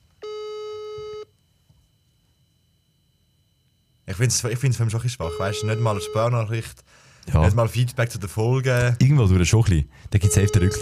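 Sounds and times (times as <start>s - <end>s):
phone call ringing tone: 0.2s - 1.3s, 5.2s - 6.5s, 10.2s - 10.8s
speech: 4.1s - 10.8s.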